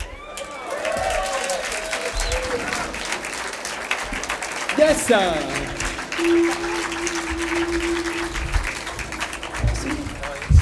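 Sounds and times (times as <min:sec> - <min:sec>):
audience applause: 0:00.0 - 0:10.5
speech: 0:04.8 - 0:06.7
low sustained tone: 0:06.2 - 0:09.4.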